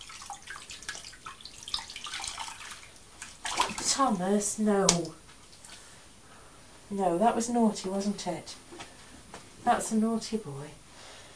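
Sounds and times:
water running from a bowl of warm water to wet a cloth: 0.0 - 4.2
speech: 4.0 - 5.2, 6.9 - 8.6, 9.6 - 10.8.

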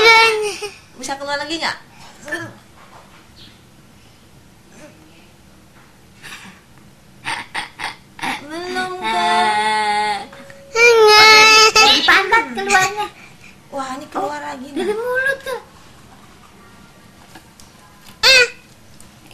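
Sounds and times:
child crying: 0.0 - 0.7, 8.2 - 13.1, 18.2 - 18.6
speech: 1.1 - 2.6, 12.3 - 15.6.

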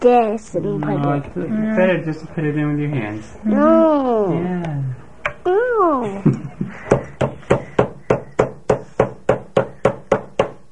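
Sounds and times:
speech: 0.0 - 6.9
hammer knocking: 6.9 - 10.6.

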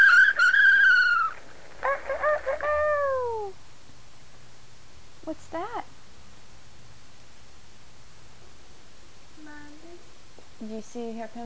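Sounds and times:
toy rooster crowing: 0.0 - 3.6
speech: 10.8 - 11.4.

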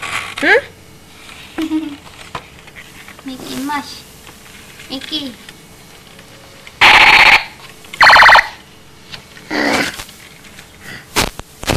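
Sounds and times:
speech: 0.4 - 0.7, 3.7 - 4.1, 4.9 - 5.5
alarm clock ringing: 6.8 - 8.4.

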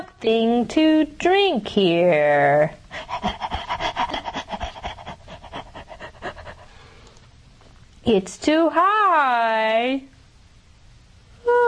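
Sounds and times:
speech: 0.2 - 3.4, 8.1 - 10.1
thirsty dog panting: 2.9 - 6.9.

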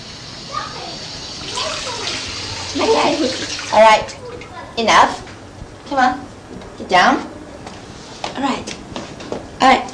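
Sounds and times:
water running as a young girl washes her hands: 0.0 - 4.6
speech: 2.8 - 4.2, 4.8 - 5.2, 5.9 - 6.3, 6.9 - 7.3, 8.4 - 8.8, 9.6 - 9.9.

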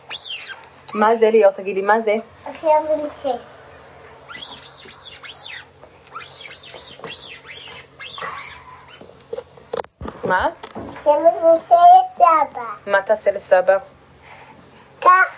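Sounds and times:
rubber toy duck squeaking: 0.0 - 0.6, 4.3 - 9.0
speech: 0.9 - 3.5, 10.3 - 14.0.

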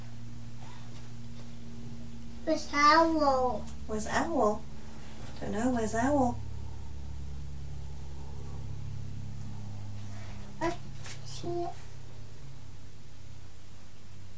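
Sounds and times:
speech: 2.5 - 4.7, 5.4 - 6.4
aeroplane flying overhead: 3.8 - 11.0.

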